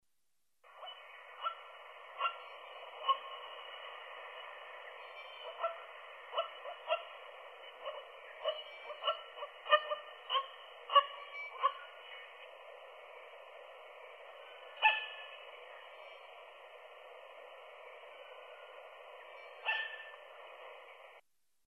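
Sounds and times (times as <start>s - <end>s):
middle spotted woodpecker call: 0.8s - 3.4s, 5.0s - 12.5s, 14.6s - 15.8s, 19.4s - 20.4s.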